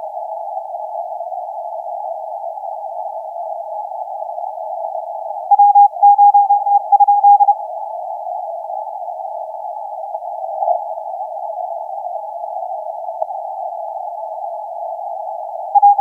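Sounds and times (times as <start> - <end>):
CW morse code tones on the 30m band: 5.5 - 7.5, 15.8 - 15.9.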